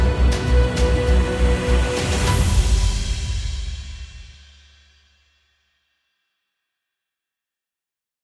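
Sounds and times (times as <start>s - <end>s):
dramatic epic inspiring cinematic music: 0.0s - 4.7s.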